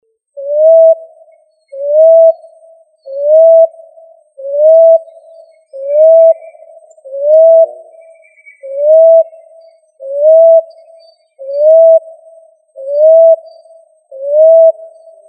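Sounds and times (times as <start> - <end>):
pigeon cooing: 0.4 - 1.2, 1.8 - 2.4, 3.1 - 3.8, 4.4 - 5.2, 5.8 - 7.8, 8.6 - 9.4, 11.5 - 12.0, 12.8 - 13.5, 14.2 - 14.9.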